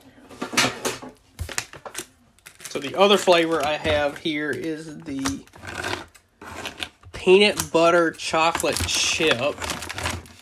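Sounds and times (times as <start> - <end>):
wrapper rustling: 1.4 - 6.1, 8.2 - 10.4
scissors cutting plastic snack wrapper: 1.5 - 10.4
speech: 2.8 - 5.6, 7.2 - 9.8.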